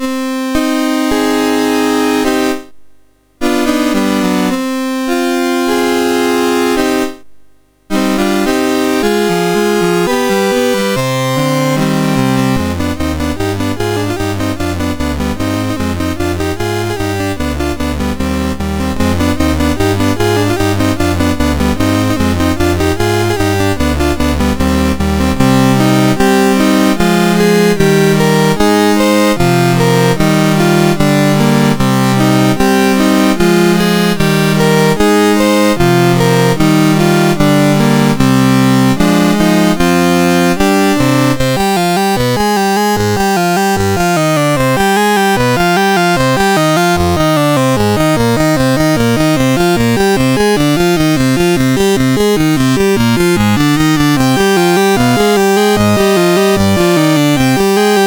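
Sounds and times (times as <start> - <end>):
MOS6581R3 chiptune trio in minor key: 0.0 - 2.7, 3.4 - 7.2, 7.9 - 58.0.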